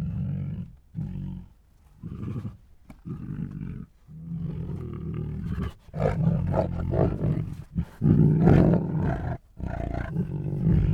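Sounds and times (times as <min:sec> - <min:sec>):
two hungry tigers roaring, huffing, growling and moaning: 0:04.8 - 0:10.9.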